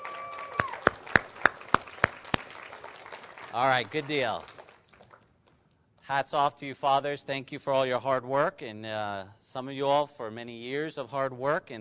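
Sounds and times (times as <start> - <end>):
audience applauding and cheering: 0.0 - 5.2
speech: 3.5 - 4.6, 6.1 - 11.8.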